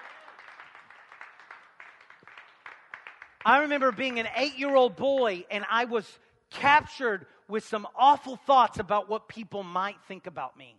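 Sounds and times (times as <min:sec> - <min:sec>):
audience clapping: 0:00.0 - 0:05.4
speech: 0:03.4 - 0:10.7.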